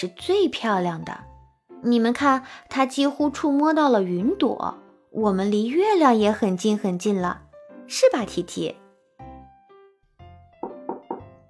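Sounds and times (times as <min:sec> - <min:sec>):
speech: 0:00.0 - 0:08.8
knocking on a door: 0:10.6 - 0:11.4.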